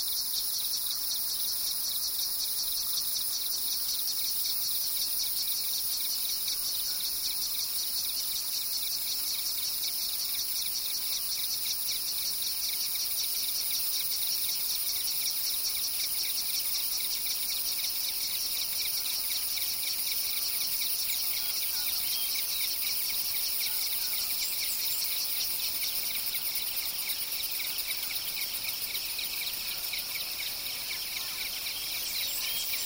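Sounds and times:
cicadas buzzing: 0.0 - 32.8
crickets chirping: 0.0 - 32.8.

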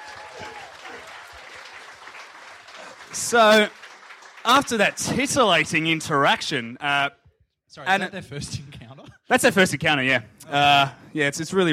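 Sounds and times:
audience applause: 0.0 - 6.6
speech: 3.1 - 3.8, 4.4 - 11.7.

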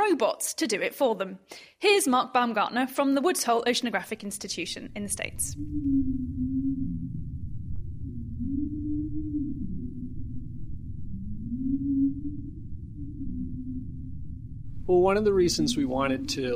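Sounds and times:
speech: 0.2 - 6.4, 14.9 - 16.5
steady underwater rumble: 4.3 - 16.5
whale calls underwater: 4.4 - 16.5.

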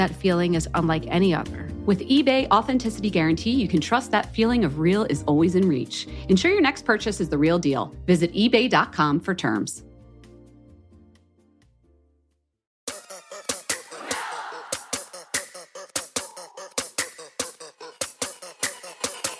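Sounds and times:
speech: 0.0 - 9.9
hands clapping: 13.7 - 19.3.

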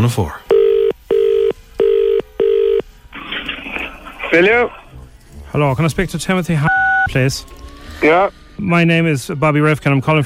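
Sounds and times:
speech: 0.0 - 0.4, 4.3 - 4.8, 5.5 - 10.2
telephone ringing: 0.5 - 2.8.

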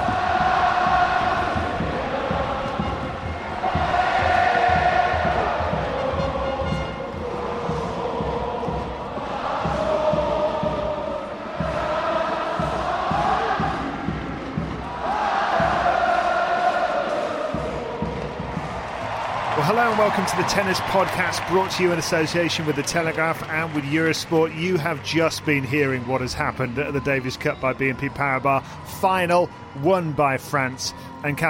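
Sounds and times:
tennis stadium crowd cheering: 0.0 - 6.5, 7.1 - 27.3
speech: 20.0 - 31.4.

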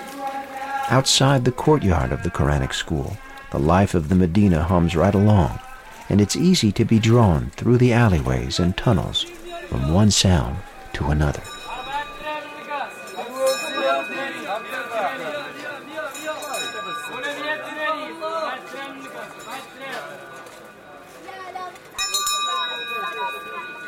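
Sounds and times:
speech: 0.9 - 11.5
water seller's hand bell ringing: 11.4 - 15.0, 16.1 - 17.7, 22.0 - 23.8.

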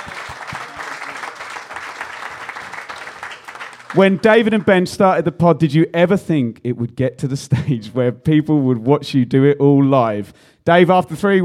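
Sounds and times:
live audience applause: 0.0 - 4.9
speech: 3.9 - 11.4.

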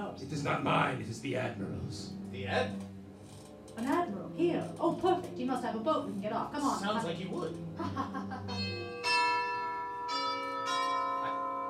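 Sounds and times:
speech: 0.2 - 2.9, 3.8 - 8.8
deep doorbell being rung: 8.4 - 11.6.

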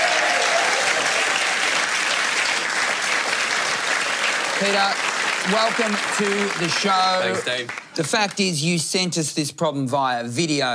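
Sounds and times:
audience applause at a live show: 0.0 - 8.5
speech: 4.6 - 10.7.

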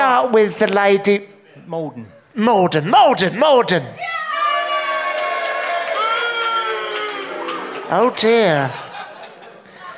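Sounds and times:
speech: 0.2 - 4.2, 7.9 - 8.8
audience cheering: 4.0 - 8.9
laughter: 6.9 - 9.9.

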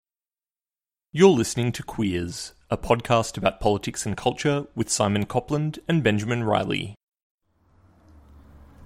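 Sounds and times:
speech: 1.2 - 7.0
bus passing outside the window: 7.5 - 8.8.

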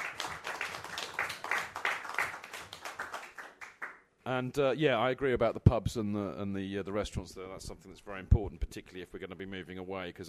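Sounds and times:
audience applause: 0.0 - 4.0
speech: 4.3 - 10.2.

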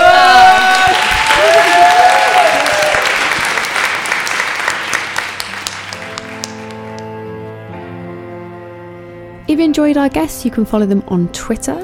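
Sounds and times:
crowd cheering and whistling: 0.0 - 5.2
audience applause: 0.0 - 7.1
speech: 9.8 - 11.8.

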